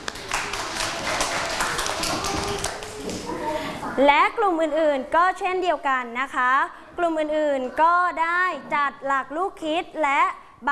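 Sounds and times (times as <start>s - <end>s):
classroom children clapping: 0.0s - 3.3s
speech: 4.0s - 10.7s.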